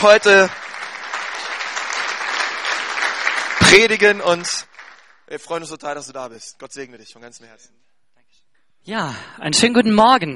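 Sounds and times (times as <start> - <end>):
speech: 0.0 - 0.6, 3.7 - 4.7, 5.3 - 7.8, 8.8 - 10.3
audience applause: 0.0 - 5.2.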